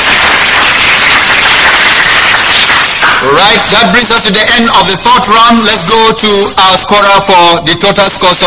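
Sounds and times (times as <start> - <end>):
applause: 0.2 - 3.3
speech: 3.5 - 8.4.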